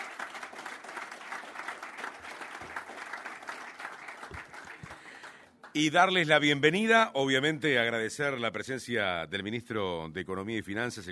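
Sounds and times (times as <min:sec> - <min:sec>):
audience applause after document signing: 0:00.0 - 0:05.7
speech: 0:05.8 - 0:11.1.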